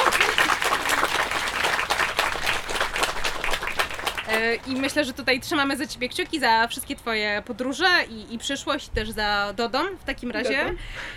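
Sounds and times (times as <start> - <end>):
audience applause: 0.0 - 4.5
speech: 4.4 - 11.1.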